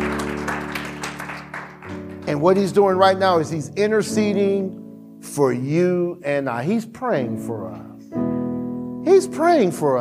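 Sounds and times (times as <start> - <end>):
audience clapping: 0.0 - 3.0
speech: 2.3 - 8.2, 9.2 - 10.0.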